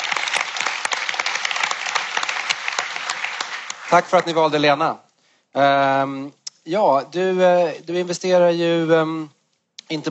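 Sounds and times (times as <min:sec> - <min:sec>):
audience applause: 0:00.0 - 0:04.5
speech: 0:03.9 - 0:10.0.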